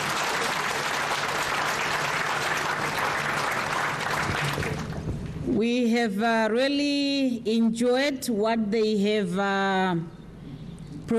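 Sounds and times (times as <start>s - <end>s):
audience applause: 0.0s - 5.3s
speech: 5.5s - 10.2s.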